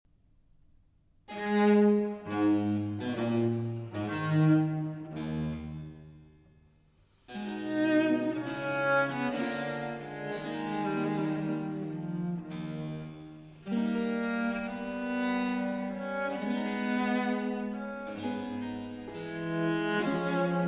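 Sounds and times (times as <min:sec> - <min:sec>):
cello and continuo sonata in A minor: 0:01.3 - 0:06.4, 0:07.2 - 0:20.6.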